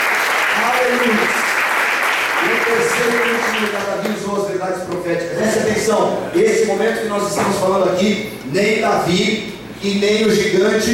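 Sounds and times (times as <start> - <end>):
audience applauding: 0.0 - 4.2
speech: 4.6 - 10.9.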